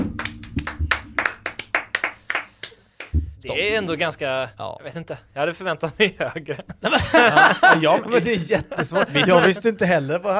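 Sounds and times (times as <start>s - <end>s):
applause: 0.1s - 3.1s
speech: 3.4s - 10.3s
laughter: 5.8s - 10.0s.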